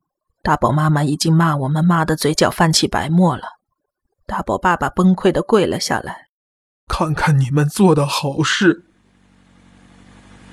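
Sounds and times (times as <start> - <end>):
speech: 0.4 - 3.6, 4.3 - 6.2, 6.9 - 8.9
motorcycle engine approaching: 7.9 - 10.5.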